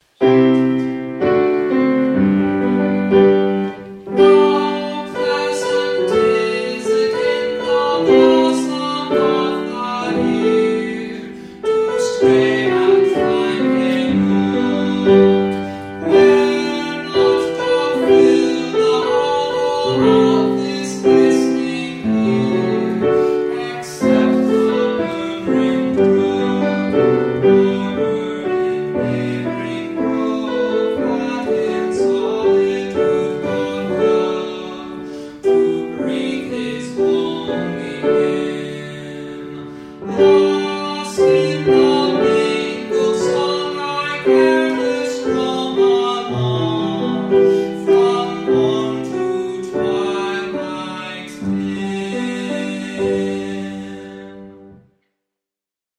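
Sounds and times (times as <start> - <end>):
folk song: 0.0 - 54.8.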